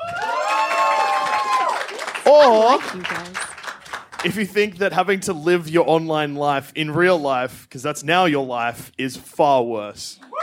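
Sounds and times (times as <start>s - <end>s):
high whoops and shouts: 0.0s - 2.9s, 10.2s - 10.4s
crowd clapping and cheering: 0.0s - 4.8s
speech: 2.3s - 3.5s, 4.2s - 10.3s.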